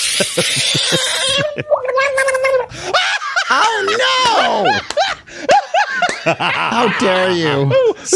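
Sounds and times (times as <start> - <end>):
speech: 0.2 - 2.9, 3.6 - 5.0, 6.2 - 8.1
screaming frog in water: 0.5 - 2.6
laughter: 2.7 - 8.1.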